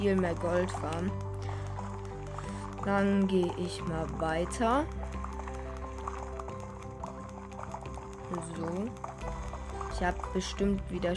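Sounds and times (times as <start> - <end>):
speech: 0.0 - 1.3, 2.8 - 5.2, 8.3 - 9.1, 10.0 - 11.1
lava bubbling in Minecraft: 0.0 - 11.1.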